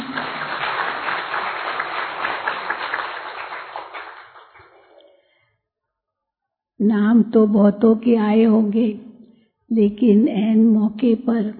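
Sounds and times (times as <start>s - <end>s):
crowd applauding: 0.0s - 5.0s
speech: 6.8s - 9.1s, 9.7s - 11.5s.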